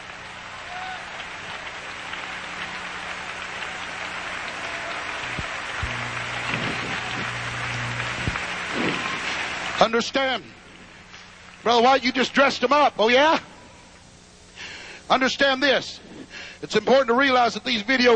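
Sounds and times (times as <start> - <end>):
audience clapping hands: 0.0 - 9.9
speech: 9.8 - 10.6, 11.6 - 13.5, 15.1 - 16.0, 16.6 - 18.1.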